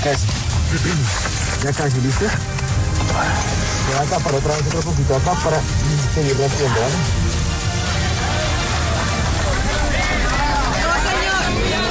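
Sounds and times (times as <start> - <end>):
speech: 0.0 - 7.2
community applauding a rescue: 6.6 - 11.8.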